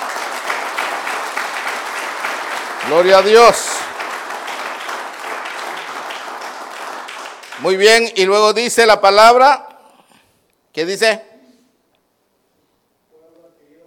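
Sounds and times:
audience clapping: 0.0s - 8.3s
speech: 2.8s - 3.7s, 7.6s - 9.7s, 10.8s - 11.3s.

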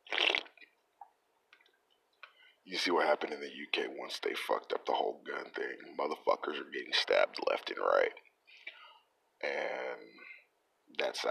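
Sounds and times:
wet slurp of a sip of a drink: 0.0s - 0.6s
speech: 2.7s - 8.3s, 9.4s - 10.2s, 11.0s - 11.2s.

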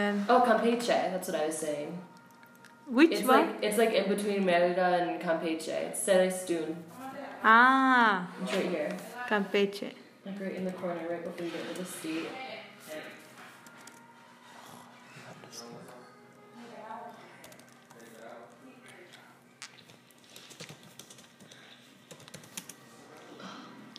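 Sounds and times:
speech: 0.0s - 2.2s, 2.9s - 13.1s
rapid computer keyboard typing: 17.4s - 18.2s, 19.7s - 22.8s.

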